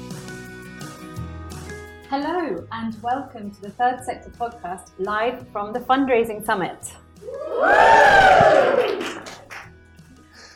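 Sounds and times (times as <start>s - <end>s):
speech: 2.1s - 9.1s
live audience at a fundraising summit shouting hello: 7.3s - 8.8s.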